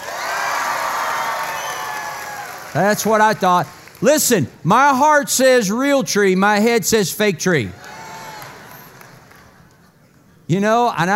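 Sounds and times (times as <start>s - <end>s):
crowd whooping and shouting: 0.0s - 2.8s, 7.8s - 9.1s
crowd clapping: 0.0s - 4.5s, 7.7s - 9.9s
speech: 2.8s - 7.9s, 10.5s - 11.1s.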